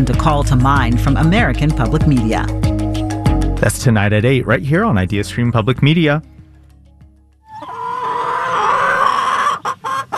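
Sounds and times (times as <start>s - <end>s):
speech: 0.0s - 2.7s, 3.6s - 6.3s
chicken clucking and squawking: 7.5s - 10.1s.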